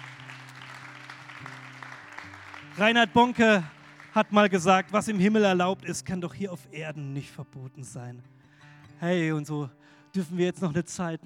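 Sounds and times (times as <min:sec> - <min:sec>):
congregation clapping in a church service: 0:00.0 - 0:05.5
speech: 0:02.8 - 0:08.4, 0:09.0 - 0:11.2.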